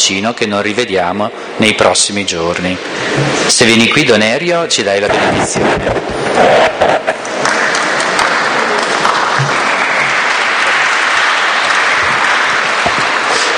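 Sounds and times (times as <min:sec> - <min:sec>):
speech: 0:00.1 - 0:07.2
audience applause: 0:07.3 - 0:13.5.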